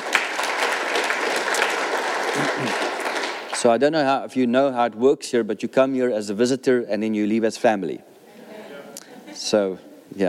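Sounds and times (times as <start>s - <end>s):
church congregation clapping: 0.0s - 3.8s
speech: 3.6s - 8.1s, 9.4s - 10.2s.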